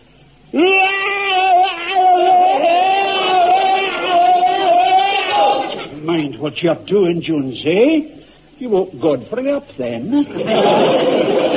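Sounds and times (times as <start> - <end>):
man's bayonet drill battle scream: 0.5 - 5.9
laughter: 1.5 - 5.9, 10.2 - 11.5
speech: 6.4 - 11.5.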